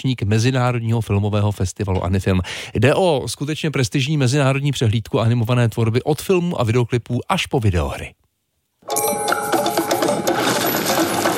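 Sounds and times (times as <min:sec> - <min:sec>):
speech: 0:00.0 - 0:08.2
festival jingle music: 0:08.9 - 0:11.3.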